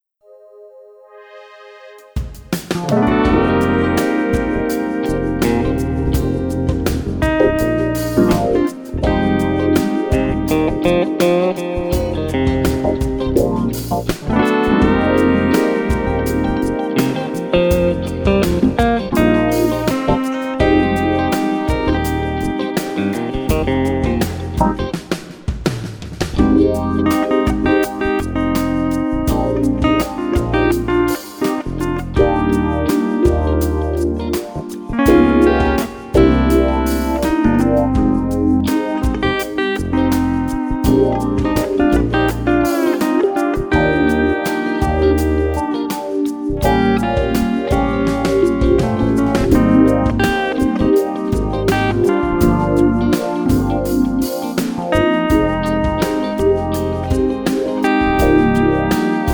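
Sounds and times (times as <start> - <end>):
Strat electric guitar: 1.2 - 59.3.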